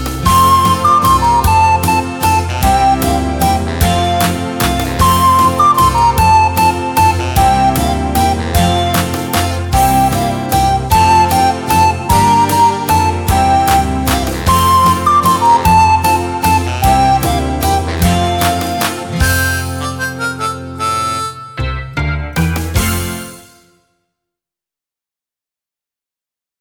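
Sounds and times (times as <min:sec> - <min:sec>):
recorder playing a folk tune: 0:00.0 - 0:23.7.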